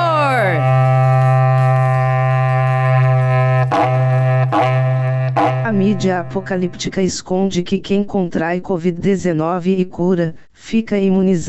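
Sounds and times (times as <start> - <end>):
berrante cattle horn blast: 0.0 - 7.0
speech: 5.8 - 11.4.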